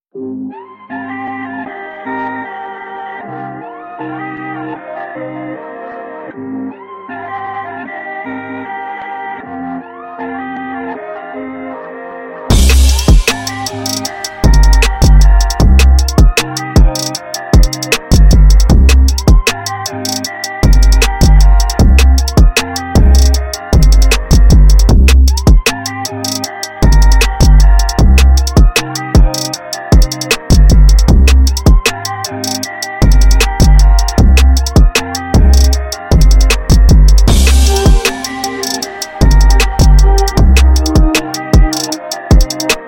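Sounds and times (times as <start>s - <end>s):
fast chill instrumental trap beat: 12.5s - 42.8s.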